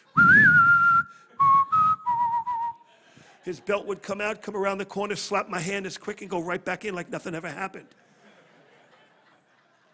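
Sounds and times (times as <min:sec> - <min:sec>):
whistled spaghetti western theme music: 0:00.2 - 0:02.8
laughter: 0:02.8 - 0:04.2, 0:08.0 - 0:09.9
speech: 0:03.4 - 0:08.0.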